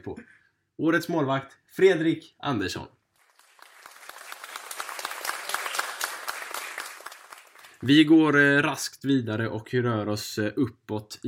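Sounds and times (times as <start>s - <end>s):
speech: 0.0s - 3.0s, 7.8s - 11.2s
clapping hands sound effect: 3.2s - 8.0s.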